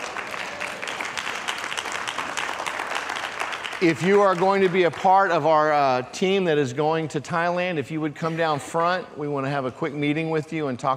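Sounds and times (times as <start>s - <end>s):
crowd clapping: 0.0s - 5.8s
speech: 3.8s - 10.9s.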